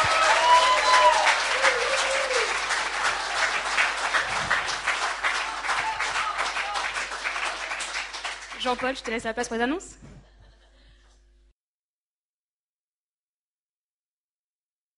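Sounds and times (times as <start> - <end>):
audience applauding: 0.0 - 9.2
speech: 8.7 - 10.1.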